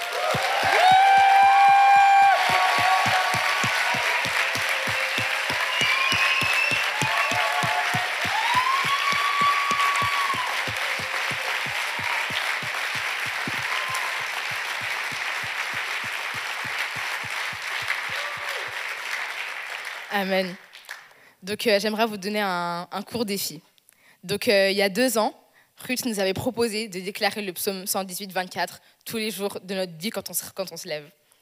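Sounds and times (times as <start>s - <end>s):
congregation cheering at a worship service: 0.0s - 20.1s
church congregation clapping at a worship service: 0.0s - 21.1s
speech: 20.2s - 20.6s, 21.5s - 31.2s.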